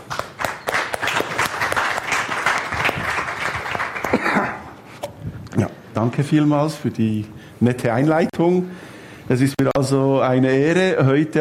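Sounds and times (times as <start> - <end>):
applause: 0.0 - 4.4
speech: 6.0 - 11.4.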